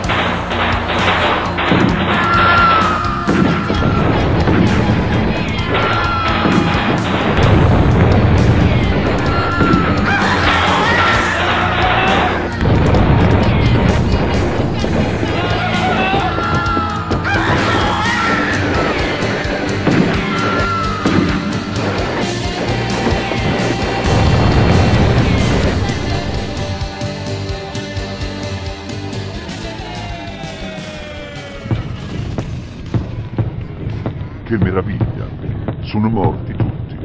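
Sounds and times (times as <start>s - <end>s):
battle noise of an army attacking a village: 0.0s - 35.9s
loud booms, thuds and bursts of gunfire: 0.0s - 37.0s
voices of people being attacked: 1.0s - 27.9s, 34.4s - 37.0s.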